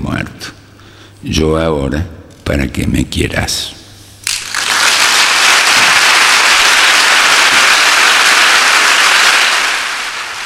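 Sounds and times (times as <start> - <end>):
speech: 1.2 - 3.8
audience ovation after a poem by Juan Gelman: 4.3 - 10.4.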